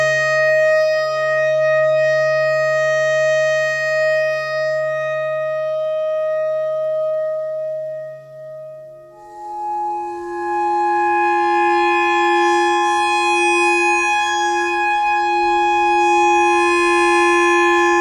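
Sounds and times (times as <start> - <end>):
clarinet notes: 0.0 - 17.9.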